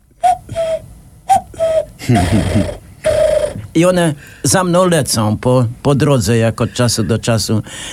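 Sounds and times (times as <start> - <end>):
person whistling bird calls to lure birds: 0.2 - 3.6
speech: 2.1 - 2.8, 3.8 - 7.9.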